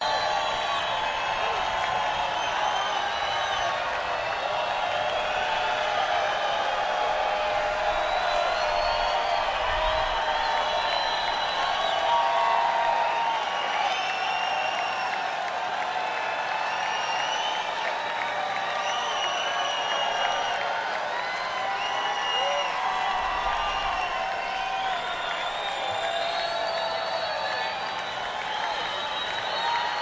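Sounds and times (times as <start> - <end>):
crowd noise: 0.0 - 30.0.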